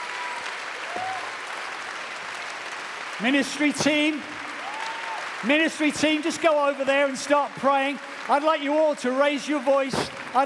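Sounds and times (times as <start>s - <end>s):
shouts and whoops: 0.0s - 1.5s, 4.6s - 5.4s
standing audience applauding: 0.0s - 10.4s
speech: 3.2s - 4.4s, 5.4s - 10.4s.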